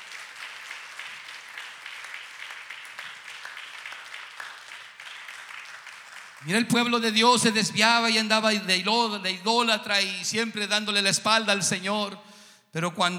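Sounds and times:
loud audience applause: 0.0s - 6.6s
speech: 6.4s - 13.1s.

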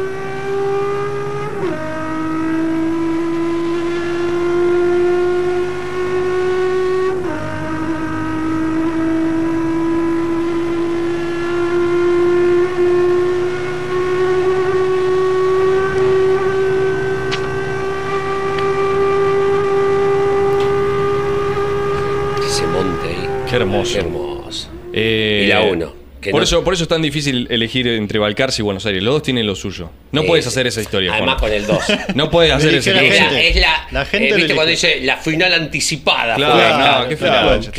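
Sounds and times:
racing car engine revving on the main straight: 0.0s - 26.6s
speech: 23.8s - 37.7s
laughter: 31.3s - 34.6s.

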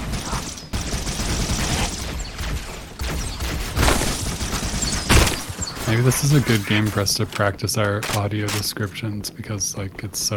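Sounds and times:
weapons fire in a video game: 0.0s - 5.5s
speech: 5.9s - 10.3s.

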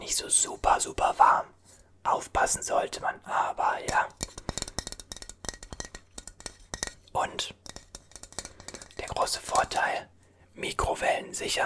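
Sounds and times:
speech: 0.1s - 4.4s, 7.2s - 7.6s, 9.2s - 11.6s
cup being handled and tapped: 3.9s - 9.1s.

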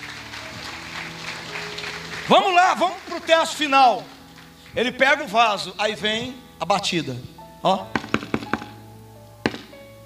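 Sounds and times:
audience applauding: 0.0s - 5.0s
speech: 2.3s - 4.1s, 4.7s - 8.0s.

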